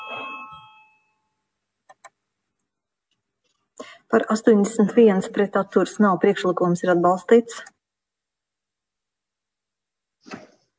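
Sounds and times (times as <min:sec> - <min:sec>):
bell rung to call a vote in parliament: 0:00.0 - 0:01.4
speech: 0:04.1 - 0:07.7.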